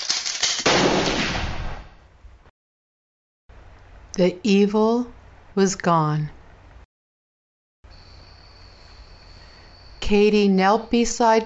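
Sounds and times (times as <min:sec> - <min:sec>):
handgun gunshot in an audio story: 0:00.6 - 0:01.9
speech: 0:04.2 - 0:06.4, 0:10.1 - 0:11.4.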